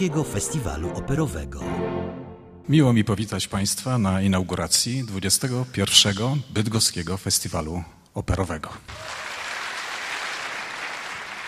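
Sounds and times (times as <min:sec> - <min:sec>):
speech: 0:00.0 - 0:01.9, 0:02.7 - 0:09.2
audience applause at the inauguration of the 21st Bydgoszcz Opera Festival: 0:08.9 - 0:11.4.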